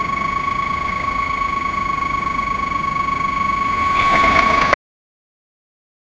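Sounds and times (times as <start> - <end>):
truck slowing down: 0.1 - 4.8
truck braking: 1.2 - 4.8.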